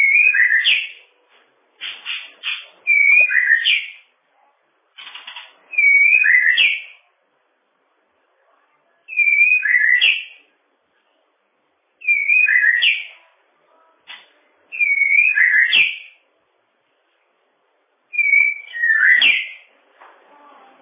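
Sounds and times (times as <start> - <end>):
bird song: 0.0 - 1.1, 1.8 - 4.1, 5.0 - 7.1, 9.0 - 10.5, 12.0 - 13.3, 14.1 - 16.2, 18.1 - 19.7.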